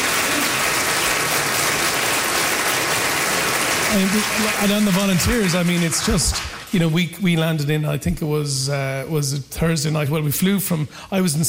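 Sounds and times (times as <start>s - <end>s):
audience applause: 0.0s - 6.9s
speech: 3.9s - 11.4s.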